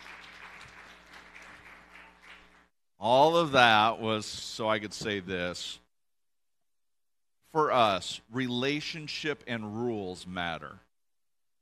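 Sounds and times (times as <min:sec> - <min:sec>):
round of applause: 0:00.0 - 0:02.7
speech: 0:03.0 - 0:05.8, 0:07.5 - 0:10.8.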